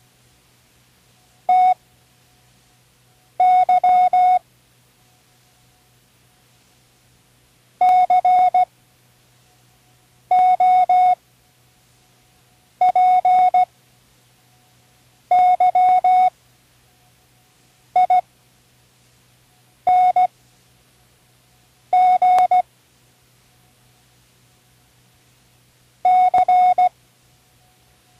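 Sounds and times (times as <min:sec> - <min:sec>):
Morse code spelling words: 0:01.5 - 0:01.8, 0:03.4 - 0:04.4, 0:07.8 - 0:08.7, 0:10.3 - 0:11.2, 0:12.8 - 0:13.7, 0:15.3 - 0:16.3, 0:18.0 - 0:18.2, 0:19.9 - 0:20.3, 0:21.9 - 0:22.6, 0:26.1 - 0:26.9.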